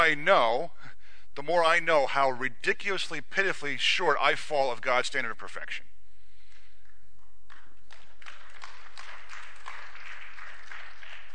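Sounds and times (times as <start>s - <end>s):
speech: 0.0s - 0.8s, 1.4s - 6.0s
audience clapping: 7.5s - 11.3s.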